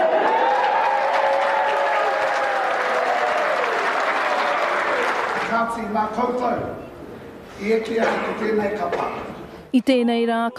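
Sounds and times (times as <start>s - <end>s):
crowd clapping as a kapa haka group's name is called: 0.0s - 5.8s
speech: 5.6s - 6.9s, 7.6s - 10.5s.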